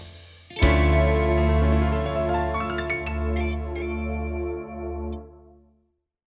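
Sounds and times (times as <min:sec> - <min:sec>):
symphony orchestra music: 0:00.6 - 0:05.4.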